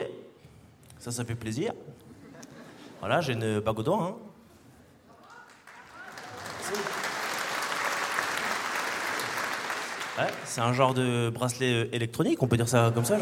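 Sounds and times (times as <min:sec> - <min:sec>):
speech: 0:01.0 - 0:02.1, 0:03.0 - 0:04.3, 0:10.2 - 0:13.2
audience applause: 0:05.2 - 0:11.0.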